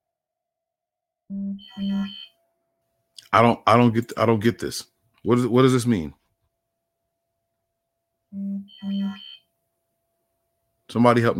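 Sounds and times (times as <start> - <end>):
mobile phone alert: 1.3 - 2.3, 8.4 - 9.4
speech: 1.3 - 2.3, 3.3 - 6.2, 8.3 - 9.2, 10.9 - 11.3.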